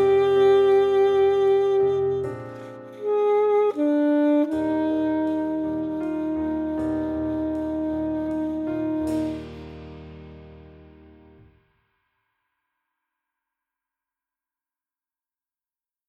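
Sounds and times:
romance played on full saxophone: 0.0 - 10.2.

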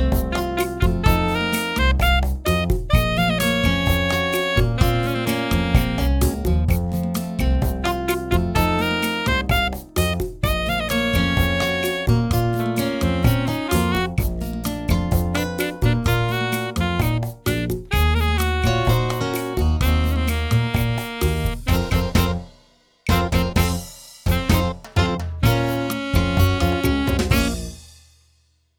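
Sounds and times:
saxophone: 0.2 - 6.7, 7.7 - 14.7, 15.3 - 27.8.

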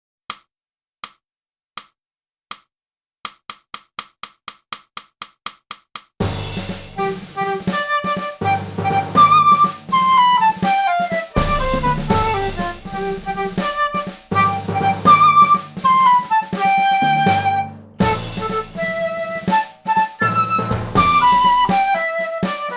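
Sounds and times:
flute: 6.8 - 22.7.

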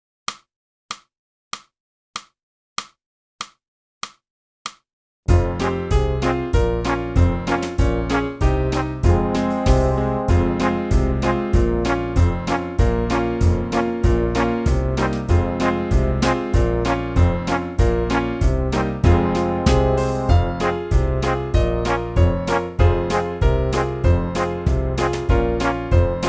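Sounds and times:
saxophone: 5.3 - 26.2.

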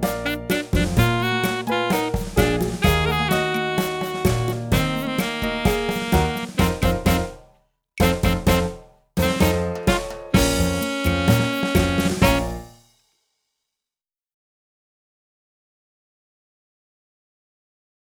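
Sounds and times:
saxophone: 0.0 - 7.4, 8.0 - 12.7.

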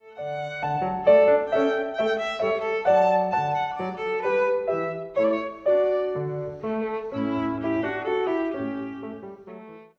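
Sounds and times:
violin: 0.0 - 9.9.

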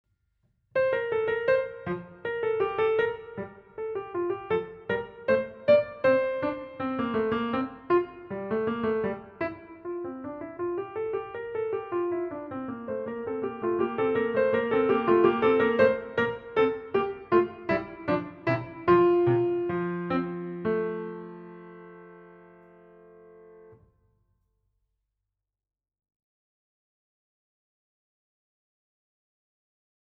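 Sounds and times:
piano: 0.7 - 23.9.

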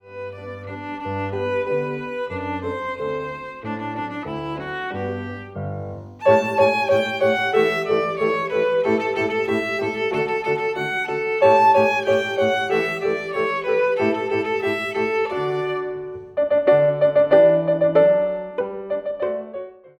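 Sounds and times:
violin: 0.0 - 17.8.

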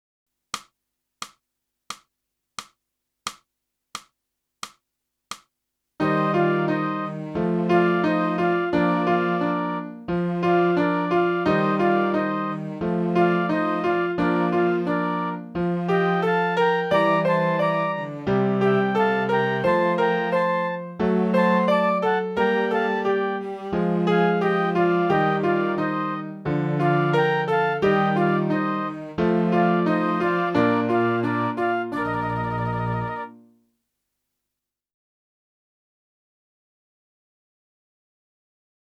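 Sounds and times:
clarinet: 6.0 - 33.6.

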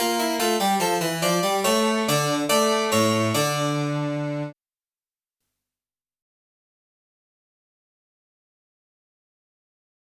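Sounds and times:
clarinet playing a bourree: 0.8 - 4.5.

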